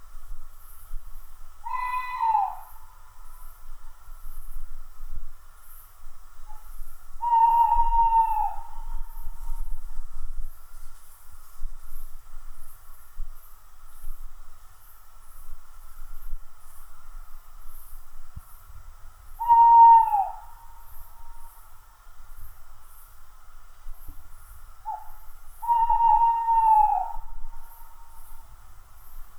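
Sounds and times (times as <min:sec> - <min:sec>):
tawny owl hooting: 0:01.6 - 0:02.9, 0:07.2 - 0:09.4, 0:19.4 - 0:21.4, 0:24.8 - 0:28.3.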